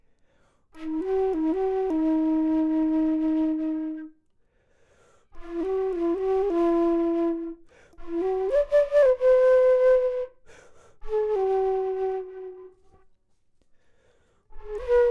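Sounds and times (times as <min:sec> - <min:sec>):
low flute: 0:00.7 - 0:04.2, 0:05.4 - 0:13.1, 0:14.5 - 0:15.1.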